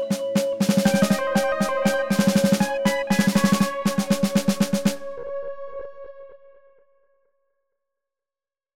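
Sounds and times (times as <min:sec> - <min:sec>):
synth snare drum etude: 0:00.0 - 0:05.9.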